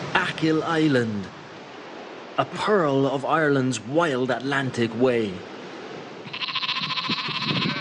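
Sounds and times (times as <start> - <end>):
speech: 0.1 - 1.4, 2.4 - 5.5
sheep bleating on Achill Island on the west coast of Ireland: 6.3 - 7.8.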